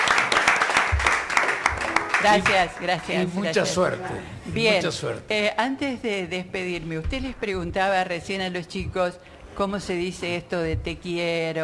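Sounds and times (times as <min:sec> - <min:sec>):
audience applause for an older woman after a story: 0:00.0 - 0:03.3
speech: 0:02.2 - 0:11.6.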